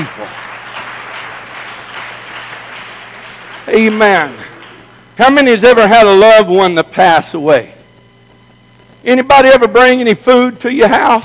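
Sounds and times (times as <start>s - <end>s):
audience clapping: 0.0s - 5.5s
speech: 3.7s - 4.5s, 5.2s - 7.8s, 9.0s - 11.2s.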